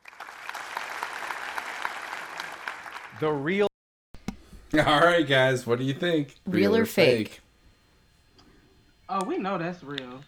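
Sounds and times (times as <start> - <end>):
audience clapping: 0.0 - 3.4
speech: 3.2 - 3.7, 4.7 - 7.4, 9.1 - 10.2.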